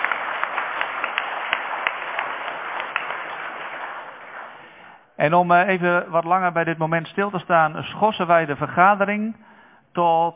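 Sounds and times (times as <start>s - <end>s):
council members applauding: 0.0s - 5.0s
speech: 5.2s - 10.3s.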